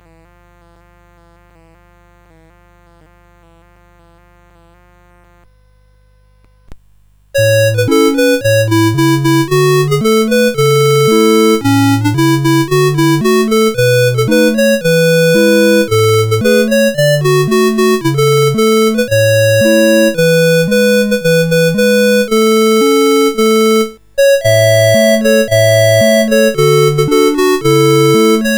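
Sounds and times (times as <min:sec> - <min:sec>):
march tune: 0:07.4 - 0:28.5.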